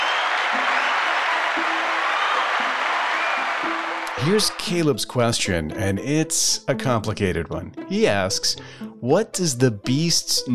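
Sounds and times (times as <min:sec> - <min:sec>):
round of applause: 0:00.0 - 0:04.7
speech: 0:04.2 - 0:10.5.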